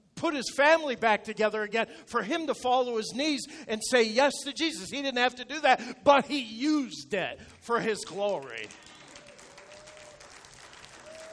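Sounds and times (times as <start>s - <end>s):
speech: 0.2s - 8.9s
church congregation clapping weakly: 8.0s - 11.3s.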